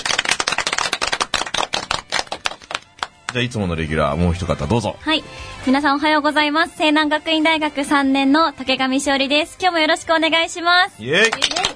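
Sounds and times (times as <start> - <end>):
audience clapping: 0.0 - 3.5, 11.1 - 11.7
speech: 3.3 - 11.6.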